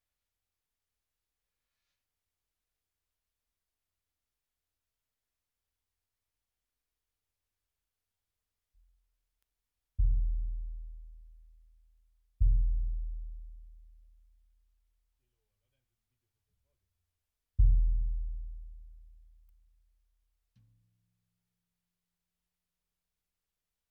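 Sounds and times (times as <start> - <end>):
bass drum: 10.0 - 14.2, 17.6 - 19.5.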